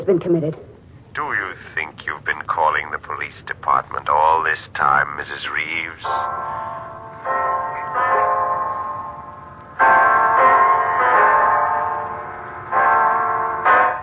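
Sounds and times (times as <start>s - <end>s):
speech: 0.0s - 1.9s, 2.8s - 6.8s
clock striking ten o'clock: 5.8s - 14.0s.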